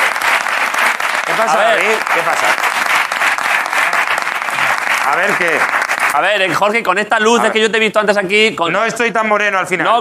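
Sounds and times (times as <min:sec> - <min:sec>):
crowd applauding: 0:00.0 - 0:06.8
speech: 0:01.4 - 0:02.8, 0:05.0 - 0:09.9.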